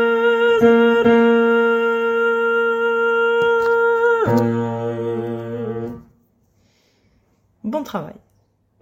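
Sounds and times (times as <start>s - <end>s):
bass: 0.0s - 6.2s.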